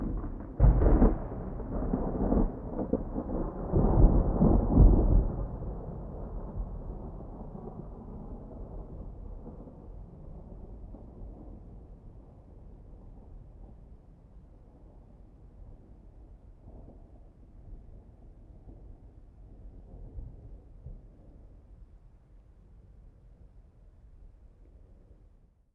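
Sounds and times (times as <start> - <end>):
distant thunder: 0.0 - 12.0.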